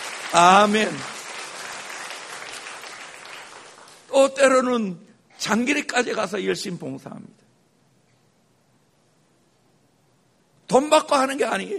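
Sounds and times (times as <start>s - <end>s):
church congregation clapping for its flower-garden team: 0.0s - 4.7s
speech: 0.3s - 1.2s, 4.2s - 7.4s, 10.7s - 11.7s.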